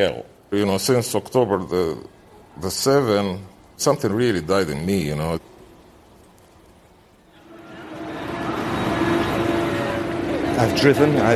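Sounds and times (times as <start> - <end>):
speech: 0.0 - 5.5, 10.6 - 11.3
coastal passenger train along Israel's coast: 7.4 - 11.3.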